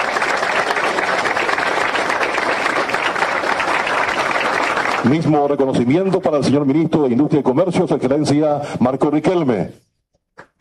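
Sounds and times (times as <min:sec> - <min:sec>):
audience applause: 0:00.0 - 0:05.8
speech: 0:05.0 - 0:09.8.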